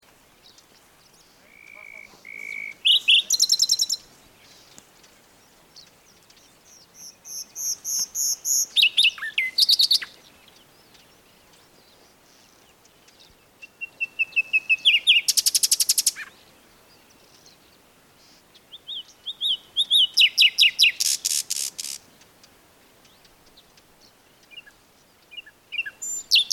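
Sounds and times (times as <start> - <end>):
common nightingale singing: 0.1 - 26.5.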